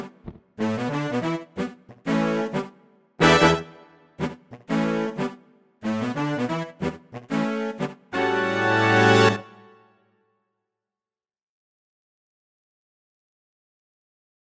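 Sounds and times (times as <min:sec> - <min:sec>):
pop brass swell: 0:00.7 - 0:09.8.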